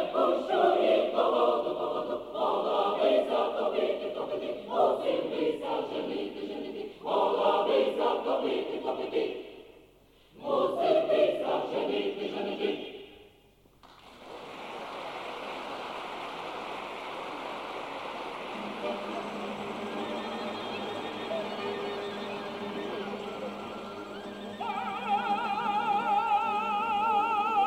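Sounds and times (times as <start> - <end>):
symphonic choir: 0.0 - 13.3, 18.4 - 27.6
orchestra: 18.5 - 26.6.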